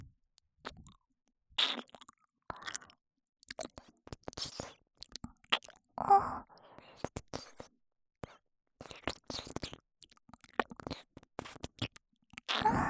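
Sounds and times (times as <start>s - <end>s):
sweet ear licking ASMR in the left ear: 1.6s - 2.9s, 3.5s - 5.9s, 7.0s - 7.7s, 8.8s - 12.7s.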